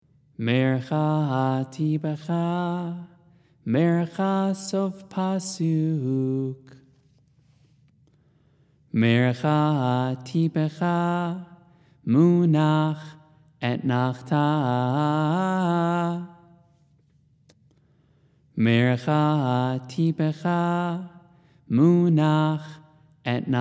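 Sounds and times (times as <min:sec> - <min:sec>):
person chanting haftarah trope: 0:00.4 - 0:03.1, 0:03.7 - 0:06.7, 0:09.0 - 0:11.5, 0:12.1 - 0:16.4, 0:18.6 - 0:23.5.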